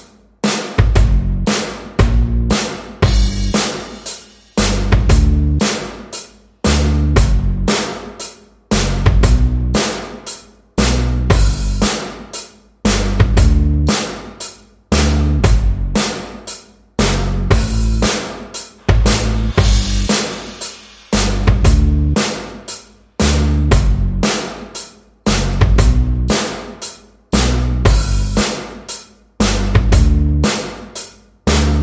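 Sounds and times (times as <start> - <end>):
drums: 0.0 - 31.8
bass: 0.8 - 3.7, 4.6 - 5.8, 6.6 - 7.8, 8.7 - 9.9, 10.8 - 11.9, 12.8 - 14.0, 14.9 - 16.2, 17.0 - 18.2, 18.8 - 20.2, 21.1 - 22.3, 23.2 - 24.4, 25.2 - 26.4, 27.3 - 28.6, 29.4 - 30.6, 31.4 - 31.8.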